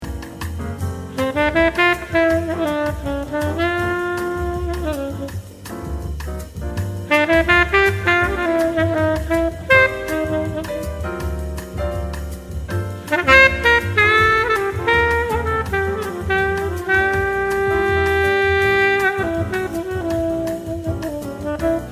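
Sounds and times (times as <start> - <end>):
instrumental saxophone: 1.0 - 21.9.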